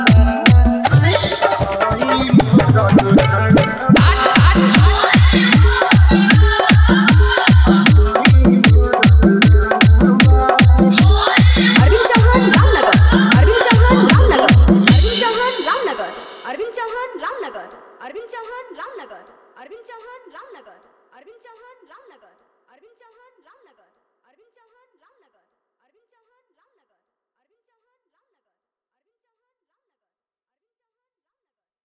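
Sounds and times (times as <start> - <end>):
dance special mix with hard bass: 0.0 - 16.4.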